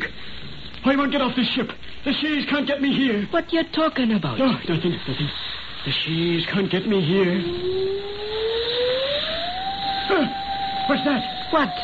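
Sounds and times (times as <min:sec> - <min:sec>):
speech: 0:00.8 - 0:08.1, 0:10.1 - 0:11.8
wind whistling: 0:06.6 - 0:11.8.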